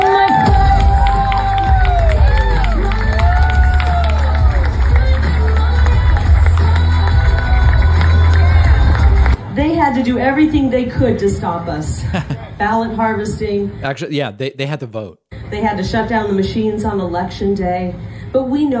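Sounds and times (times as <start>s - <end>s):
crowd cheering at a political rally for a candidate for governor: 0.0s - 9.4s
speech: 10.3s - 18.7s.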